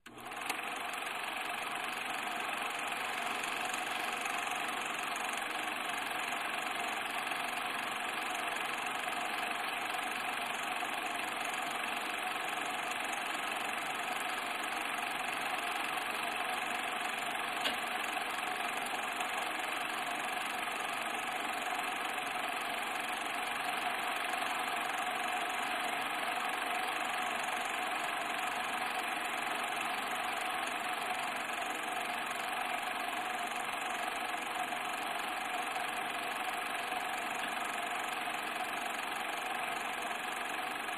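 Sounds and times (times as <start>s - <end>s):
8mm film projector running: 0.0s - 40.9s
film projector clicking: 17.6s - 17.9s.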